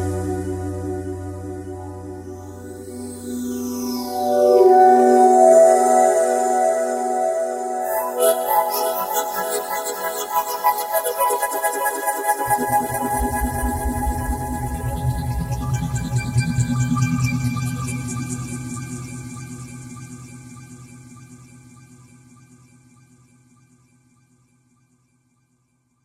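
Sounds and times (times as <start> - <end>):
Roland JD-990 synthesizer factory patch: 0.0 - 22.2.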